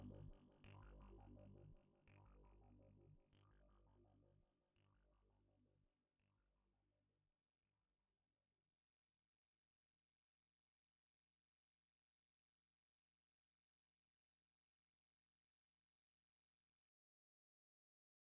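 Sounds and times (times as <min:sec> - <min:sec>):
Moog synthesizer through RE301 chorus echo unit: 0:00.0 - 0:05.8.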